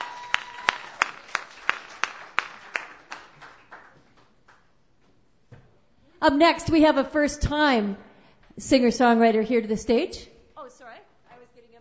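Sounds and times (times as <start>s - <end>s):
audience applause: 0.0s - 4.2s
speech: 6.2s - 10.3s.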